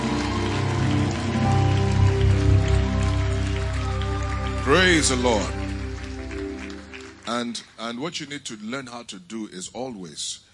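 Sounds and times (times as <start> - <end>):
sustained musical tones: 0.0 - 7.8
audience clapping hands: 0.0 - 8.8
speech: 4.7 - 5.6, 7.3 - 10.5.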